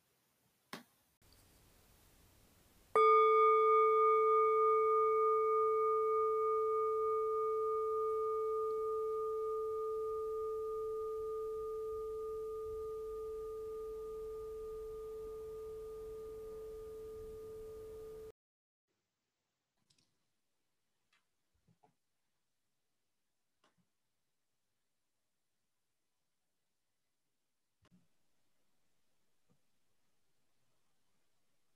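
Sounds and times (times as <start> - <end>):
meditation bell ringing: 3.0 - 18.3.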